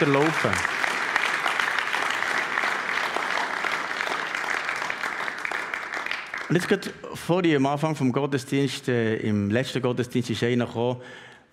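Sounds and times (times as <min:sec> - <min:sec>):
speech: 0:00.0 - 0:00.8, 0:06.5 - 0:11.5
audience applause: 0:00.0 - 0:06.9.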